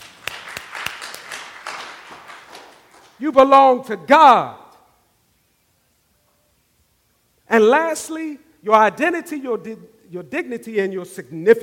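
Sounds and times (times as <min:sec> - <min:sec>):
audience clapping hands: 0:00.0 - 0:03.2
speech: 0:03.2 - 0:04.6, 0:07.6 - 0:11.6.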